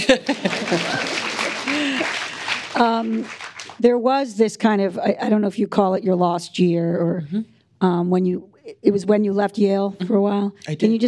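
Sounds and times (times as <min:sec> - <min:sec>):
speech: 0:00.0 - 0:02.2, 0:02.8 - 0:11.0
laughter: 0:00.0 - 0:03.4
audience applause: 0:00.0 - 0:03.8.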